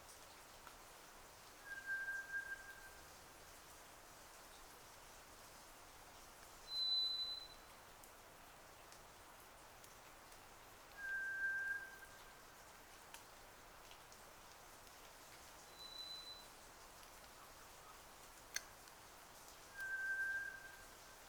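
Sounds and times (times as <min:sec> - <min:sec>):
rain falling: 0:00.0 - 0:21.2
White's thrush song: 0:01.6 - 0:03.0, 0:11.0 - 0:12.2, 0:19.7 - 0:21.0.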